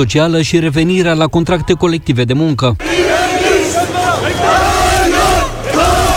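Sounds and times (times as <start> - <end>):
speech: 0.0 - 3.1
large crowd of protesters shouting and chanting: 2.8 - 6.1.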